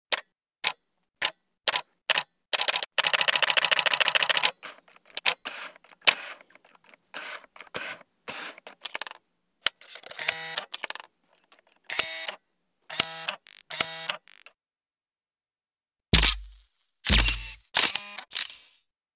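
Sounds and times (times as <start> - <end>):
camera: 2.6 - 14.6, 16.2 - 18.8.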